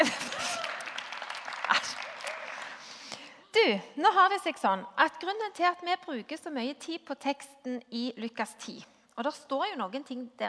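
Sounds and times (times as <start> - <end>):
laughter: 0.0 - 0.8
small round of applause: 0.0 - 3.0
speech: 3.6 - 10.4.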